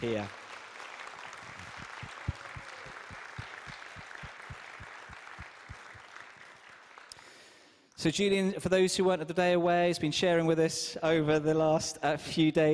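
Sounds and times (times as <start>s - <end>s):
speech: 0.0s - 0.4s, 8.0s - 12.7s
audience applause: 0.0s - 7.6s.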